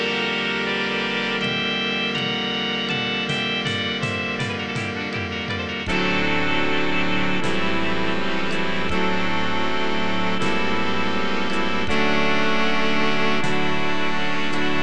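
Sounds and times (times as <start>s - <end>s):
midi music: 0.0s - 14.8s.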